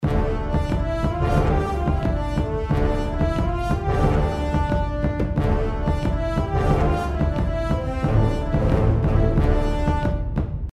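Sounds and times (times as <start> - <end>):
intro background music: 0.0 - 10.7.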